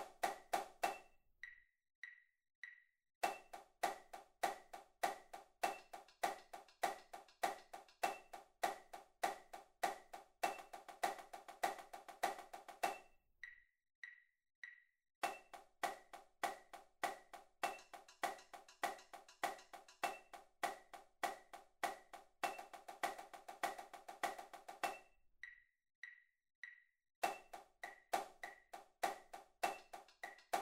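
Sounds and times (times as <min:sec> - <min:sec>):
accented tapping: 0:00.0 - 0:30.5.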